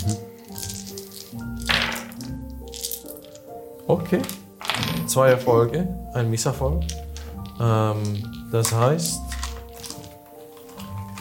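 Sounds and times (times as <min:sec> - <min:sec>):
speech: 0:00.1 - 0:00.3, 0:03.9 - 0:04.4, 0:05.1 - 0:09.3
three twenty-sided dice rolling: 0:00.6 - 0:03.4.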